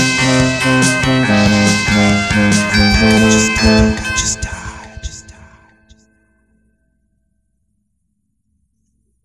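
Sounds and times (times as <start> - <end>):
cell phone lead synth: 0.0 - 6.0.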